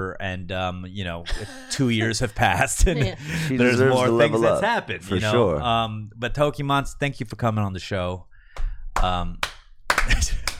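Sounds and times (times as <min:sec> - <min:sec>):
speech: 0:00.0 - 0:10.5
slow deliberate hand claps: 0:08.6 - 0:10.5.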